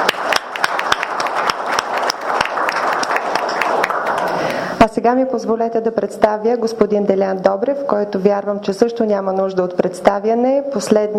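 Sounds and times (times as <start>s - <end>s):
audience applause: 0.0s - 4.7s
speech: 4.9s - 11.1s.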